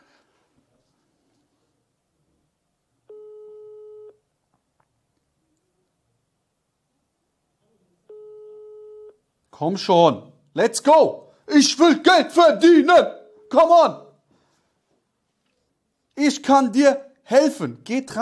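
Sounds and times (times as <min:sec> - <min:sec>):
telephone ringing tone: 0:03.1 - 0:04.2
speech: 0:09.6 - 0:14.0, 0:16.2 - 0:18.2.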